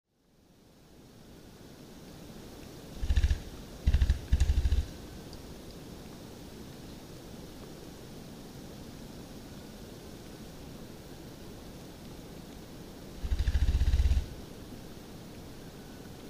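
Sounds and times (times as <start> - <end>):
copper pheasant drumming: 3.0 - 5.0, 13.2 - 14.4.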